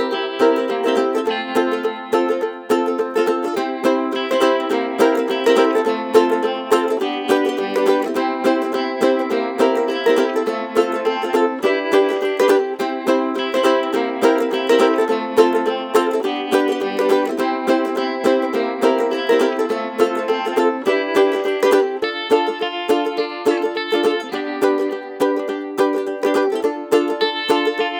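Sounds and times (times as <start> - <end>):
happy Hawaiian ukulele music: 0.0 - 27.9.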